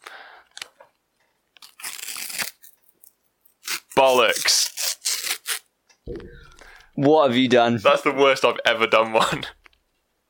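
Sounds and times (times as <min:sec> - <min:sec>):
sticker packets tearing open: 0:01.6 - 0:05.7
speech: 0:04.0 - 0:04.6, 0:07.0 - 0:09.6.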